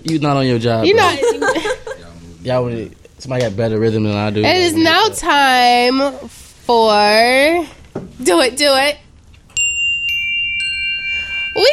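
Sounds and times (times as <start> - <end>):
speech: 0.0 - 1.8, 2.4 - 9.0, 11.6 - 11.7
laughter: 0.9 - 2.2
chime sound effect: 9.5 - 11.7.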